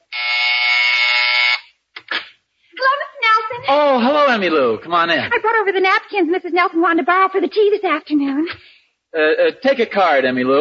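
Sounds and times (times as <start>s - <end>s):
doorbell buzzer: 0.0s - 1.7s
speech: 3.7s - 10.6s.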